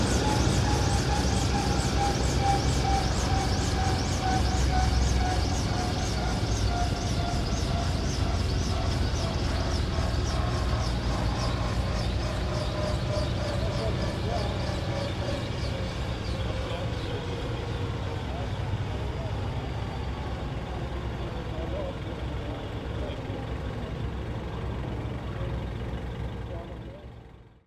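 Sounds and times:
Bell UH-1 Iroquois helicopter landing and shutting down: 0.0 - 27.6.

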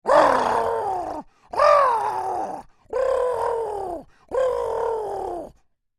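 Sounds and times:
angry oodle creature bird calls: 0.0 - 5.6.

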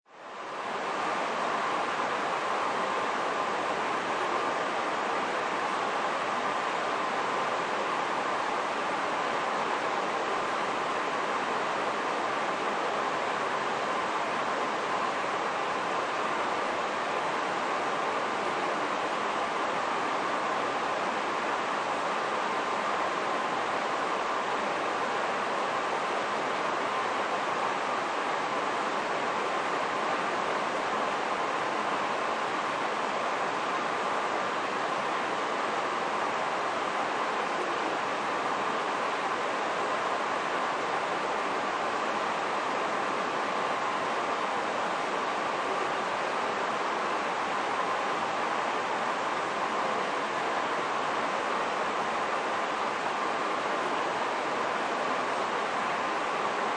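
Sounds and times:
large outdoor stadium sports crowd noise: 0.2 - 56.7.

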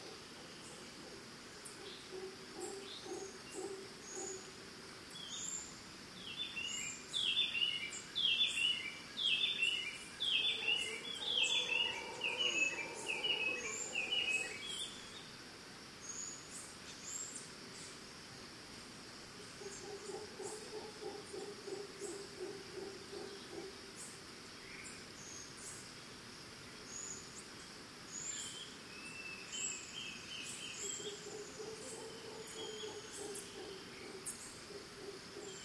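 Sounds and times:
distant monkeys in Costa Rica: 0.0 - 4.9, 9.7 - 15.2, 19.4 - 24.2, 30.7 - 35.6
birds in Costa Rica: 0.0 - 15.3, 19.4 - 35.6
crickets in Costa Rica: 0.0 - 35.6.

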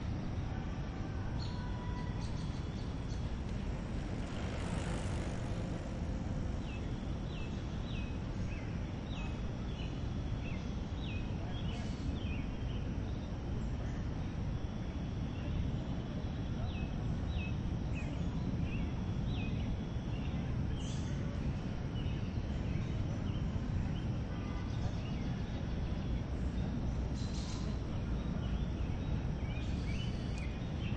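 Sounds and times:
park ambience in Central Park NYC near a path: 0.0 - 30.9
people bicycling past on a park path: 1.8 - 9.8
people walking past on a park path: 2.0 - 8.3.

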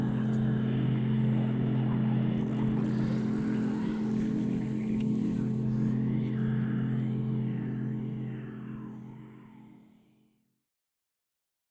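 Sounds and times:
reverberant drone swell: 0.0 - 9.8
demonic whispers: 2.5 - 9.8.

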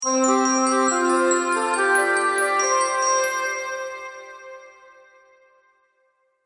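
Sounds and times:
Christmas finale chimes: 0.0 - 4.6.

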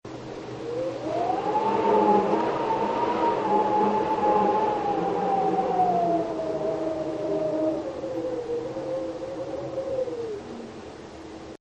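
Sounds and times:
wind whistling: 0.1 - 11.6.

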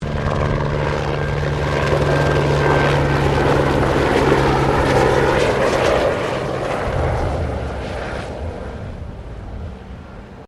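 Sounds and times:
Bell 204 firefighting helicopter passing close: 0.0 - 10.4.

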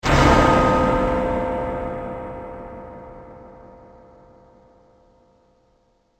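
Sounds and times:
clock tower explosion: 0.0 - 2.0.

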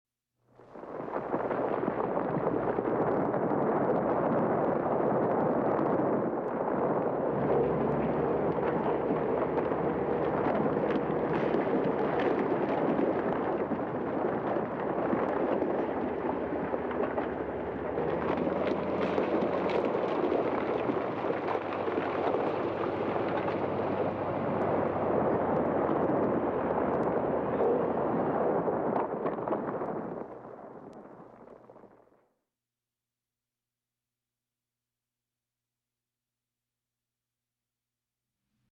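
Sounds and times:
avalanche: 0.6 - 32.2.

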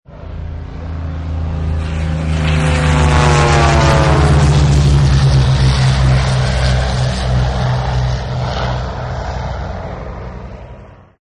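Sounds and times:
squadron of airplanes flying by: 0.1 - 11.2.

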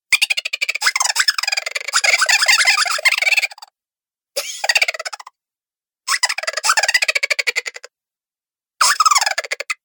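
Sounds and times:
chipmunk laughter cartoon voice: 0.2 - 3.6, 4.4 - 5.3, 6.1 - 7.9, 8.8 - 9.8.

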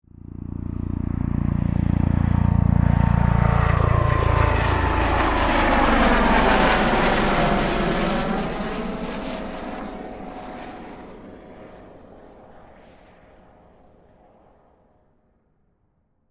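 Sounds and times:
HH-65 Dolphin helicopter passing overhead: 0.0 - 15.4.

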